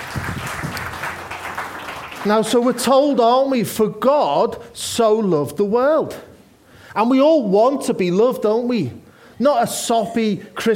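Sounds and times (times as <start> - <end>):
audience clapping: 0.0 - 3.1
speech: 2.2 - 6.3, 6.9 - 10.7.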